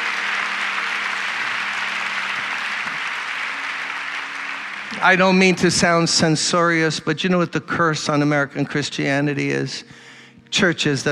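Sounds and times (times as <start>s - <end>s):
audience clapping hands: 0.0s - 6.8s
speech: 5.0s - 11.0s.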